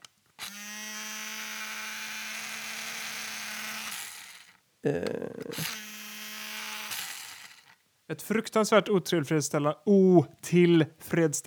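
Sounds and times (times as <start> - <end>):
automatic pencil sharpener motor whirring: 0.0 - 4.6, 5.4 - 7.8
person murmuring: 4.8 - 5.7
speech: 4.8 - 5.9, 8.1 - 11.4.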